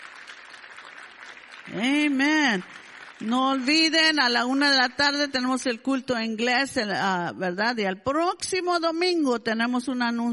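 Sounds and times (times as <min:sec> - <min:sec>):
audience applauding: 0:00.0 - 0:03.9
speech: 0:01.7 - 0:10.3.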